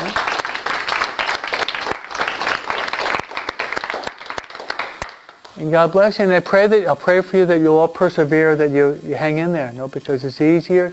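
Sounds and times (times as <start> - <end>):
group applauding: 0.0 - 5.5
speech: 5.6 - 10.9.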